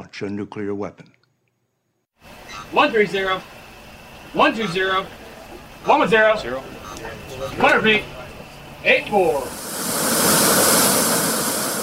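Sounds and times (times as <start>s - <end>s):
speech: 0.2s - 1.2s, 2.7s - 3.6s, 4.3s - 5.2s, 5.8s - 8.2s, 8.8s - 9.7s
USS Kentucky submarine surfacing off the coast of Hawaii: 9.2s - 11.8s.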